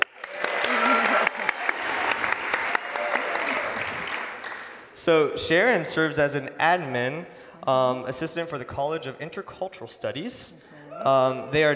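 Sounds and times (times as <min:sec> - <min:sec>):
audience applauding a couple introduced on stage: 0:00.0 - 0:04.9
speech: 0:05.0 - 0:11.7.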